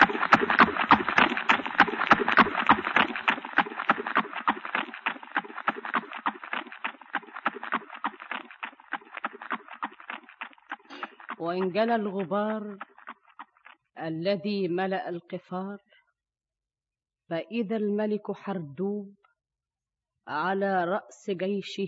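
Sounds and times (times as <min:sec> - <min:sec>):
hooves of many horses ridden by approaching horsemen galloping: 0:00.0 - 0:13.8
speech: 0:11.5 - 0:12.9, 0:14.0 - 0:15.8, 0:17.3 - 0:19.2, 0:20.3 - 0:21.8.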